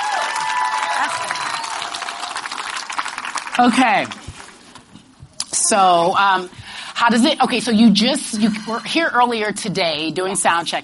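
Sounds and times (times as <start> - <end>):
audience applause: 0.0 - 4.6
speech: 3.6 - 4.2, 5.5 - 10.8.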